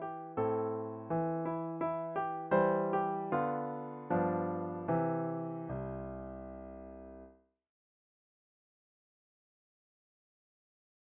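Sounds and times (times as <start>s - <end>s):
solo piano waltz: 0.0s - 7.4s.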